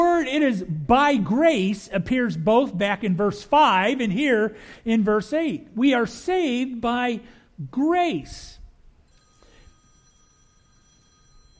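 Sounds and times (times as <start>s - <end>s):
speech: 0.0s - 8.6s
mobile phone ringing during a church sermon: 9.1s - 11.5s.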